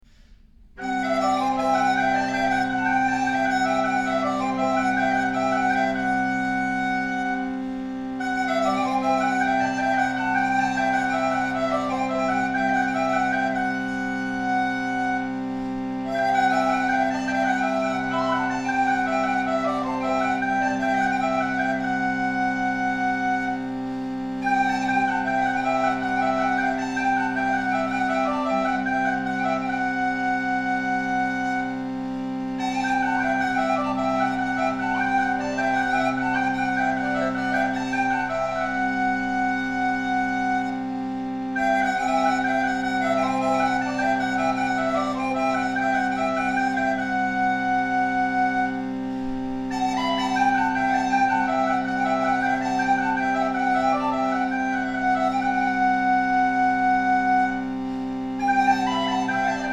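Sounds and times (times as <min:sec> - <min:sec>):
chalumeau improvisation: 0:00.1 - 0:59.7.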